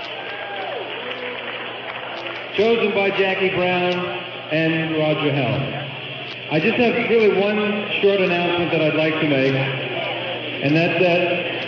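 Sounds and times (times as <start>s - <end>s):
audience clapping: 0.0s - 4.1s
murmur of crowd voices: 0.0s - 11.6s
speech: 2.6s - 5.8s, 6.5s - 9.8s, 10.6s - 11.4s.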